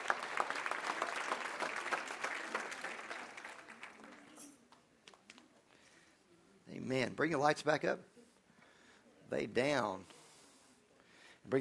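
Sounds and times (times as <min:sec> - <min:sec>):
audience applause: 0:00.0 - 0:04.4
speech: 0:06.9 - 0:08.1, 0:09.3 - 0:10.1.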